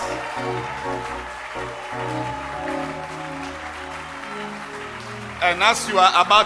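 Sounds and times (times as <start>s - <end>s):
church congregation clapping in celebration during worship: 0.0s - 6.4s
music with sustained held tones: 0.0s - 6.4s
speech: 5.4s - 6.4s.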